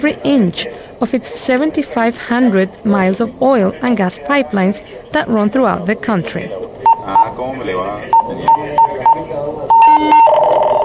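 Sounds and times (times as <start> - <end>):
speech: 0.0 - 10.2
pipeline control room alarm beeping: 8.1 - 10.8.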